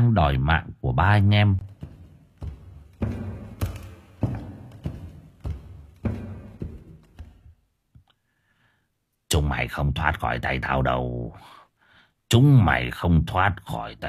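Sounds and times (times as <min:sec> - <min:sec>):
speech: 0:00.0 - 0:01.7, 0:09.3 - 0:11.6, 0:12.3 - 0:14.0
footsteps clomping through a house: 0:01.4 - 0:07.7.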